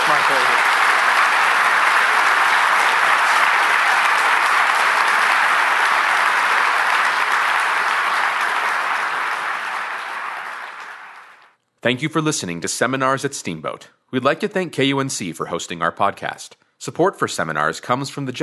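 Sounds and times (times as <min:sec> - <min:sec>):
audience applause: 0:00.0 - 0:11.6
speech: 0:11.8 - 0:18.4.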